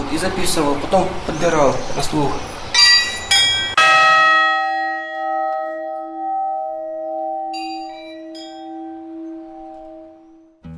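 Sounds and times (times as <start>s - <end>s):
speech: 0.1s - 2.5s
monastery church bells ringing: 2.7s - 10.6s.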